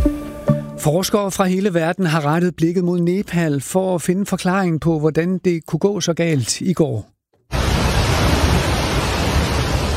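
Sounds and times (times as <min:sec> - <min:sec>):
speech: 0:00.8 - 0:07.2
rushing brown floodwater sweeping away buildings and cars: 0:07.5 - 0:09.9.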